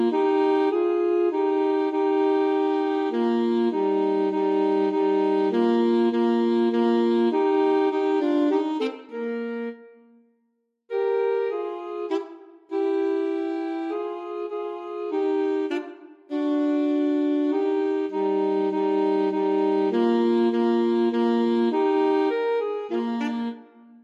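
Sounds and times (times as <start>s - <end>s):
alto saxophone duet playing a minuet: 0.0s - 10.2s, 10.9s - 24.0s.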